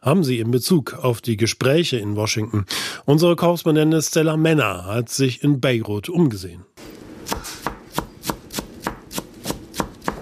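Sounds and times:
speech: 0.0s - 6.7s
chef chopping herbs for a chicken marinade in a Beirut restaurant kitchen: 7.3s - 10.2s.

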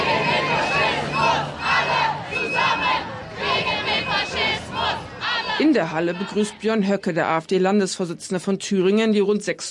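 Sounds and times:
protest crowd chanting and shouting beside an AfD party congress hall: 0.0s - 7.3s
speech: 5.8s - 9.6s.

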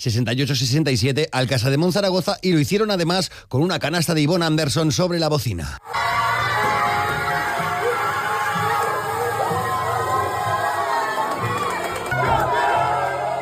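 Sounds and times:
speech: 0.0s - 6.2s
voices chanting: 5.9s - 13.3s
women's team shouting and cheering celebrating a league title in the locker room: 5.9s - 13.3s.

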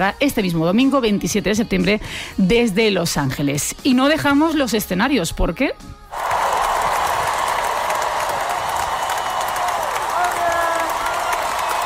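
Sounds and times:
speech: 0.0s - 6.0s
concert audience applause: 6.1s - 11.8s.

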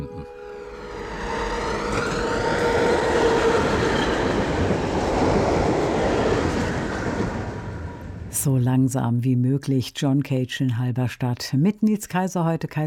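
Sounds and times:
tram running on rails: 0.0s - 8.6s
speech: 8.4s - 12.8s.

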